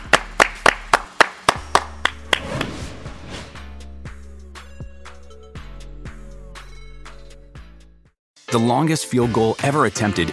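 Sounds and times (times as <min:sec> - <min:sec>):
hands clapping: 0:00.0 - 0:02.4
speech: 0:08.5 - 0:10.3.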